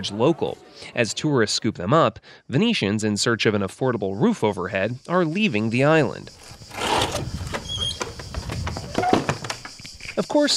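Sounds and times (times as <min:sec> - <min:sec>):
speech: 0:00.0 - 0:06.9, 0:10.2 - 0:10.5
window shutters of an abandoned ground-floor apartment in Venice pried open: 0:06.4 - 0:09.7.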